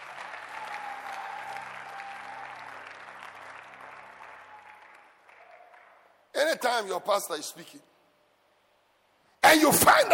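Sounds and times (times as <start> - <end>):
audience applause: 0.0 - 6.2
speech: 6.4 - 7.9, 9.6 - 10.1.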